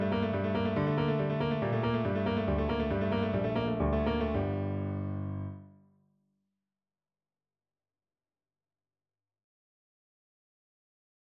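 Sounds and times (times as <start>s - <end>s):
piano duet: 0.0s - 5.7s.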